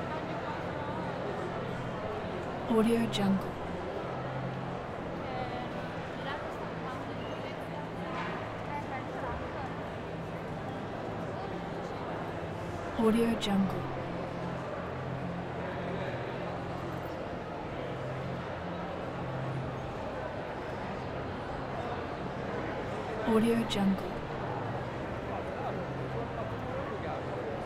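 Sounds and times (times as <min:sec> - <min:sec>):
market hall ambience: 0:00.0 - 0:27.6.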